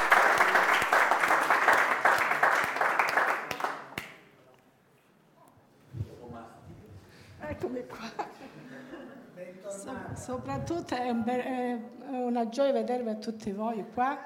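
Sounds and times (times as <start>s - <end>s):
audience applause: 0.0s - 4.0s
speech: 10.2s - 14.2s.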